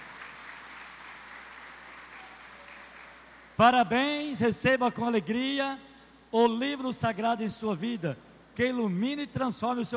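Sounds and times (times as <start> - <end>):
crowd applause: 0.0 - 3.6
speech: 3.6 - 9.9.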